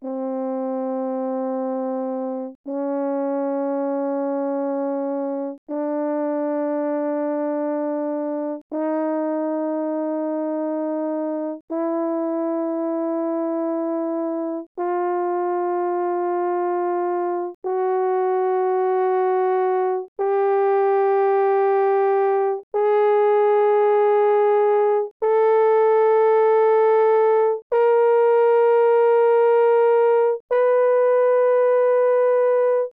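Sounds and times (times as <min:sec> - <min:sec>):
French horn playing C4 to B4 mezzo forte: 0:00.0 - 0:32.9.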